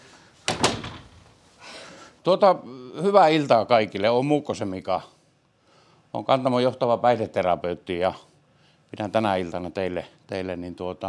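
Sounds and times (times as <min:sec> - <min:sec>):
door being shut: 0:00.4 - 0:01.4
speech: 0:02.2 - 0:05.1, 0:06.1 - 0:08.3, 0:08.9 - 0:11.0.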